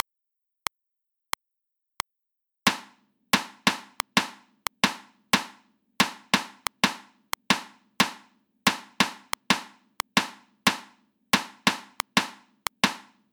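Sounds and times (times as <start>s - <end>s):
sixteenth-note rhythm: 3.4s - 10.8s, 11.4s - 13.1s.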